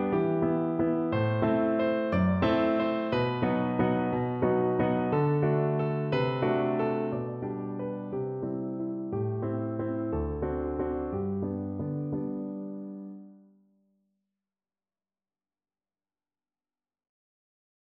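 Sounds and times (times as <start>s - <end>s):
piano waltz: 0.0s - 13.5s.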